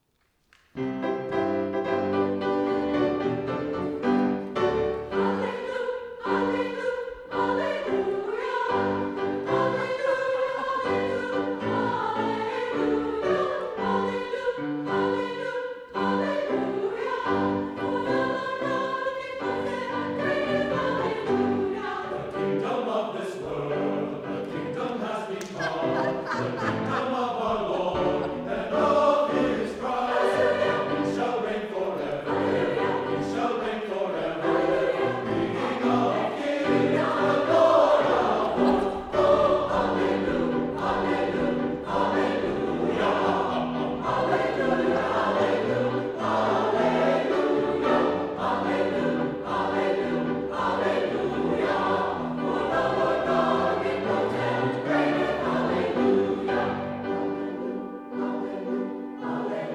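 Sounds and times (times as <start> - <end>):
Christmas song: 0.0 - 59.7
laughter: 25.4 - 29.0, 38.4 - 39.4.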